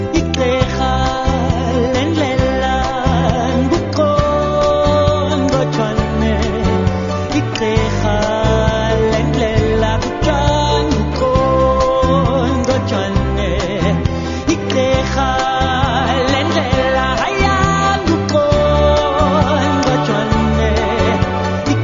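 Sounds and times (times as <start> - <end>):
song with clicking: 0.1 - 6.7, 7.3 - 21.8.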